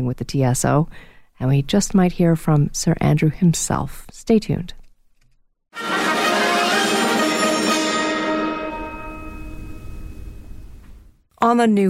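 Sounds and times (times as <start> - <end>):
speech: 0.0 - 4.8, 11.4 - 11.8
orchestral music imitating a chiming musical clock: 5.8 - 10.9.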